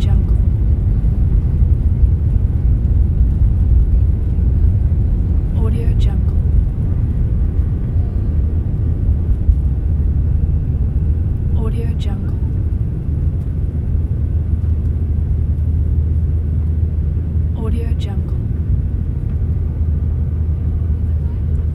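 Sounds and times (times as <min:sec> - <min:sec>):
ambient sound inside a plane taking off: 0:00.0 - 0:21.7.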